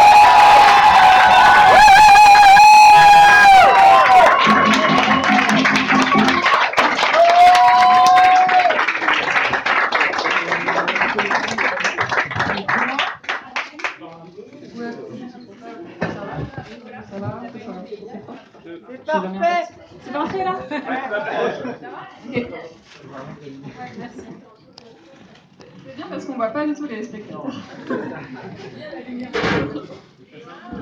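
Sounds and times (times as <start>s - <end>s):
audience applauding a first-time performer: 0.0s - 14.0s.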